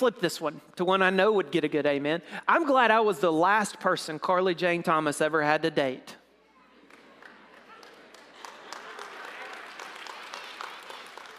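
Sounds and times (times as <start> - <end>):
speech: 0.0 - 6.2
audience applause: 6.8 - 11.3.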